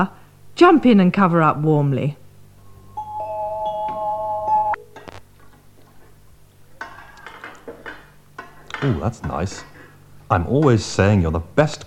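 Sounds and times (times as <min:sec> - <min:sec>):
speech: 0:00.0 - 0:02.2, 0:08.8 - 0:09.7, 0:10.3 - 0:11.8
steady high tone: 0:02.6 - 0:04.8.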